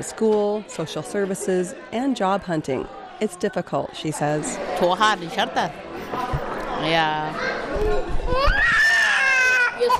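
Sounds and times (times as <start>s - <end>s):
speech: 0.0s - 8.8s, 9.8s - 9.9s
toddler crying after falling off chair: 8.3s - 9.9s.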